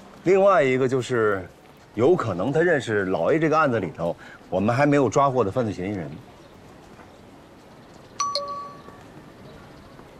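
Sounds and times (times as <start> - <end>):
speech: 0.2 - 6.3
phone message notification chime: 8.2 - 9.0.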